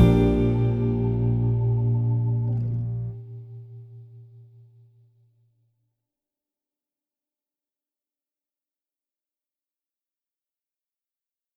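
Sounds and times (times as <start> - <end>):
jazz backing track: 0.0 - 3.1.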